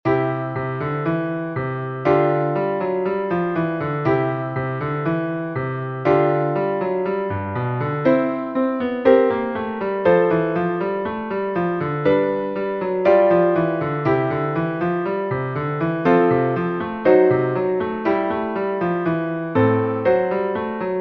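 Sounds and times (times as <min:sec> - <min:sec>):
jazz piano exercise for young pianist: 0:00.0 - 0:20.9.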